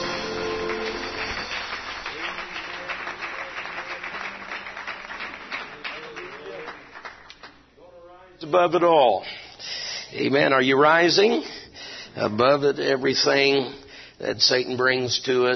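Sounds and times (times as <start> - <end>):
church congregation clapping hands in praise: 0.0 - 7.7
speech: 8.5 - 9.4, 10.1 - 11.6, 12.2 - 15.5.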